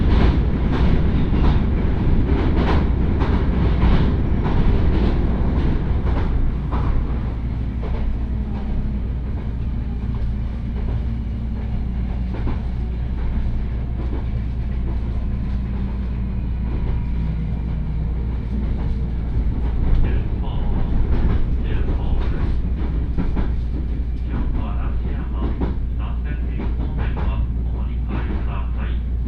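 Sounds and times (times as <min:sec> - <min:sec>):
train rumble on line toward Osaka Airport: 0:00.0 - 0:29.2
voices on train: 0:19.9 - 0:22.7, 0:24.1 - 0:29.2.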